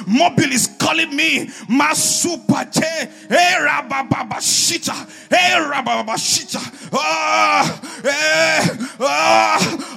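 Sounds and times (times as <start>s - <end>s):
speech: 0.1s - 9.9s
church congregation at prayer groaning: 3.5s - 9.9s.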